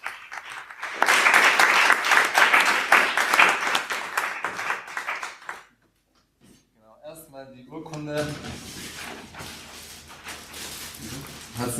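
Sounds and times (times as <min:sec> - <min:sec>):
audience applause: 0:00.0 - 0:05.7.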